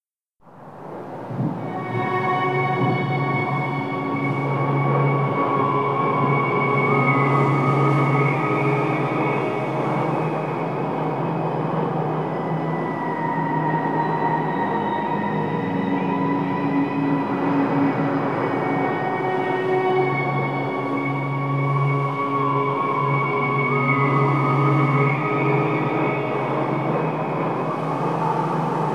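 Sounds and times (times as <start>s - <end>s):
tower ambience: 0.4s - 28.9s.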